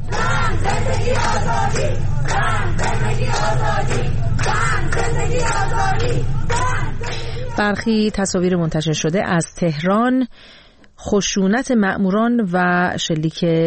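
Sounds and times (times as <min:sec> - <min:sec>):
protest crowd chanting slogans: 0:00.0 - 0:08.3
speech: 0:01.1 - 0:13.6.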